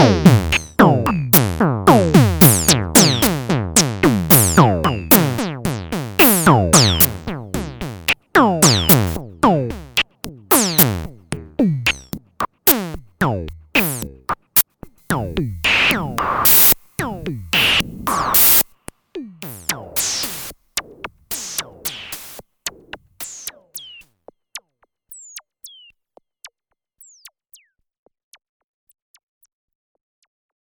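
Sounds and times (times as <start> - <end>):
filtered FM synth tone: 0.0 - 12.0, 15.1 - 18.6.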